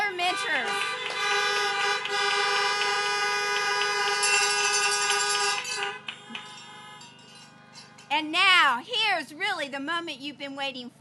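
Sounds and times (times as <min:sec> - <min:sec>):
car horns honking in celebration: 0:00.0 - 0:08.2
speech: 0:08.2 - 0:10.9.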